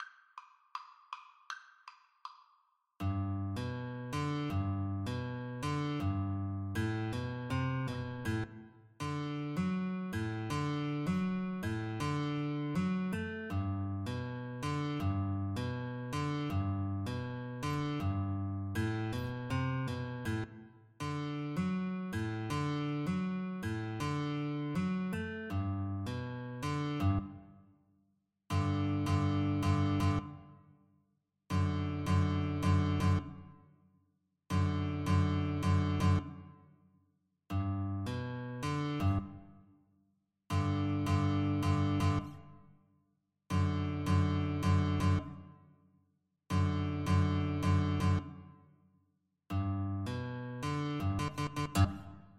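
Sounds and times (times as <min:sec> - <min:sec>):
guitar duet: 0:03.0 - 0:27.5, 0:28.5 - 0:30.4, 0:31.5 - 0:33.4, 0:34.5 - 0:36.5, 0:37.5 - 0:39.5, 0:40.5 - 0:42.5, 0:43.5 - 0:45.4, 0:46.5 - 0:48.4, 0:49.5 - 0:52.3.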